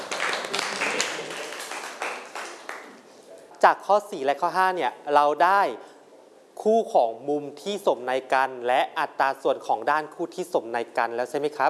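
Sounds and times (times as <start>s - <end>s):
classroom clapping for a student: 0.0s - 3.0s
speech: 3.6s - 5.9s, 6.6s - 11.6s.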